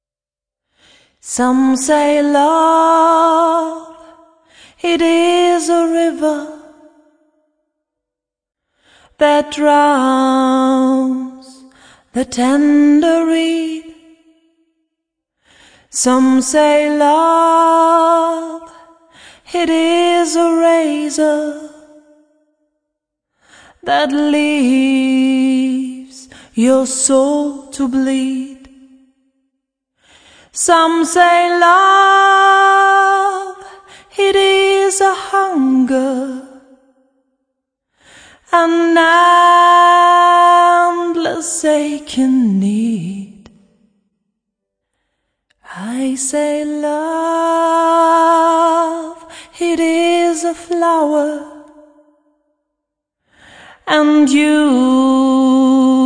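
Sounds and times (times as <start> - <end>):
a cappella singing: 1.2 - 7.1, 9.2 - 14.4, 15.9 - 22.2, 23.7 - 29.0, 30.5 - 36.8, 38.4 - 43.7, 45.6 - 52.0, 53.7 - 56.0.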